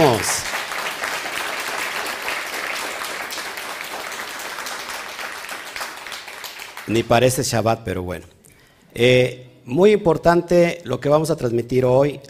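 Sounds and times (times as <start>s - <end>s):
crowd applause: 0.0s - 7.0s
speech: 6.9s - 8.4s, 9.0s - 12.2s.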